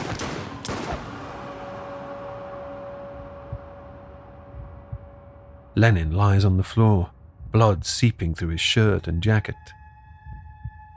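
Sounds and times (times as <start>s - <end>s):
gunshots: 0.0s - 1.3s
speech: 5.8s - 9.8s.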